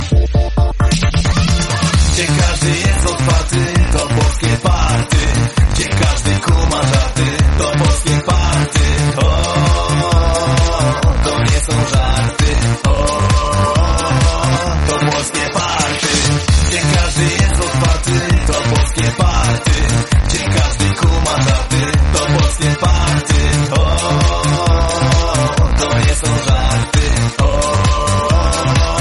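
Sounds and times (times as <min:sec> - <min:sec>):
Polish party music: 0:00.0 - 0:29.0.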